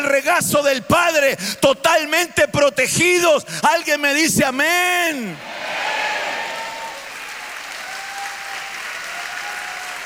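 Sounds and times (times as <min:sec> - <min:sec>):
speech: 0:00.1 - 0:05.8
audience clapping: 0:06.0 - 0:10.0.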